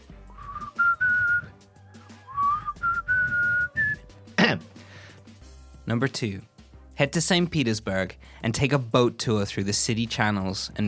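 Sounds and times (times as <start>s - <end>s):
person whistling a rock song melody: 0.2s - 1.6s, 2.2s - 4.1s
speech: 5.9s - 10.8s.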